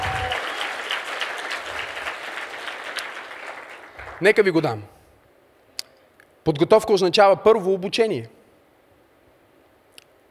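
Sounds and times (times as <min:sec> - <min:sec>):
audience applauding: 0:00.0 - 0:04.8
speech: 0:04.2 - 0:05.0, 0:06.4 - 0:08.4.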